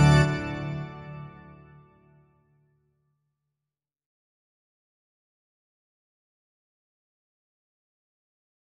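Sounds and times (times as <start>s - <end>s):
accompaniment only: 0.0s - 1.6s.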